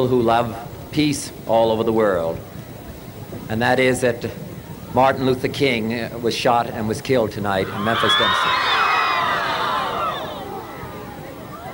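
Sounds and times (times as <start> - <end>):
speech: 0.0 - 2.5, 3.5 - 8.8
large crowd cheering and shouting: 7.6 - 11.7.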